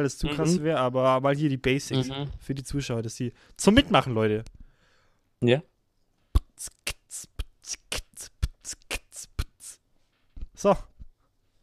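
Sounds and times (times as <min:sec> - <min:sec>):
speech: 0:00.0 - 0:04.6, 0:05.4 - 0:05.7, 0:06.6 - 0:07.8, 0:10.6 - 0:10.9
beatboxing: 0:06.3 - 0:09.8.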